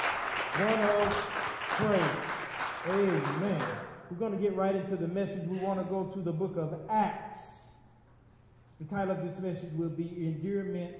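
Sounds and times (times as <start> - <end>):
audience applause: 0.0 - 3.8
speech: 0.6 - 7.5, 8.8 - 10.9.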